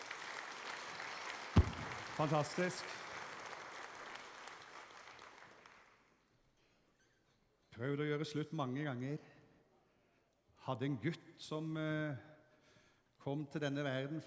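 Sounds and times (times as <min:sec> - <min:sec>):
audience clapping: 0:00.0 - 0:06.2
sharp thump: 0:01.6 - 0:02.0
speech: 0:02.2 - 0:03.0, 0:07.8 - 0:09.4, 0:10.6 - 0:12.3, 0:13.2 - 0:14.2.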